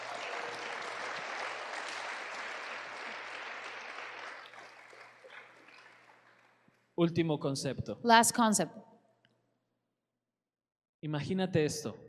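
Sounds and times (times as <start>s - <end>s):
congregation clapping during a church service: 0.0s - 6.7s
speech: 7.0s - 8.9s, 11.0s - 12.0s.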